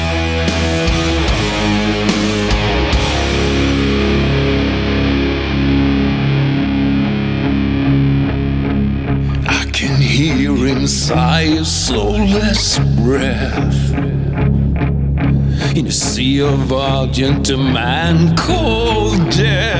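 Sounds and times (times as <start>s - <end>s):
heavy metal with thick distorted guitars grinding low chords: 0.0s - 19.7s
speech: 11.4s - 13.8s, 15.8s - 19.7s.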